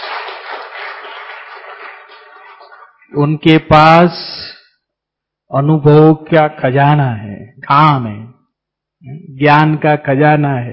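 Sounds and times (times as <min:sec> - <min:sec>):
crowd clapping loudly: 0:00.0 - 0:03.2
speech: 0:03.1 - 0:04.5, 0:05.5 - 0:08.3, 0:09.0 - 0:10.7.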